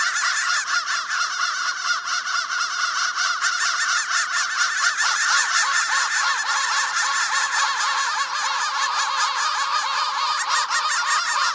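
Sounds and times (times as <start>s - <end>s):
crow flock chorus: 0.0s - 11.5s.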